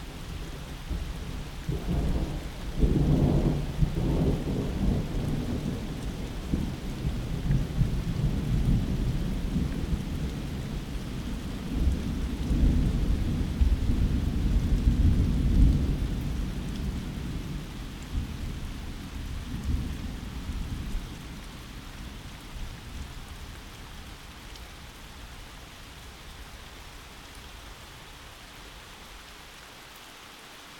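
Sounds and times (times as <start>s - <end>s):
thunderstorm: 0.8s - 23.7s.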